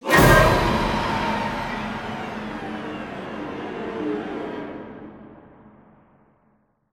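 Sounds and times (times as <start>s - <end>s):
battle music stinger: 0.1s - 5.6s.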